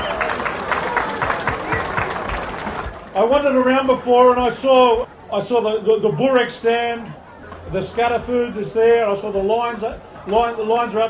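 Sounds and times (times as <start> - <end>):
audience applause: 0.0 - 3.6
speech: 3.2 - 11.0.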